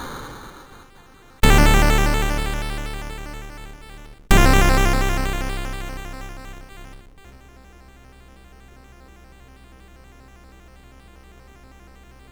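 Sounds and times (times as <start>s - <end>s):
intro music on MOS6581R2 chip: 1.4s - 7.1s.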